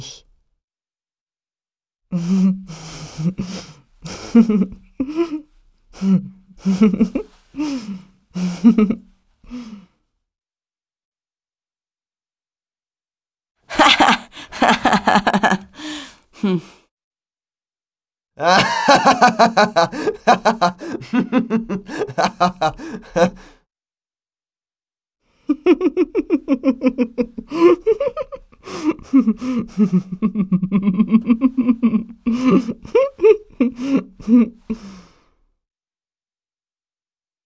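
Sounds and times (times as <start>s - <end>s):
person laughing: 2.1s - 9.0s, 13.7s - 16.8s, 18.4s - 23.5s, 25.5s - 35.0s.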